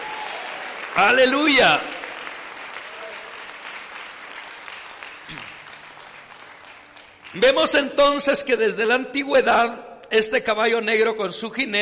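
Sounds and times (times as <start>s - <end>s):
audience applauding: 0.0s - 7.8s
speech: 1.0s - 1.9s, 7.4s - 11.7s.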